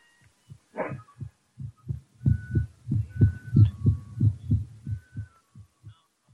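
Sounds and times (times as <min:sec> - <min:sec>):
heartbeat: 0:00.5 - 0:06.3.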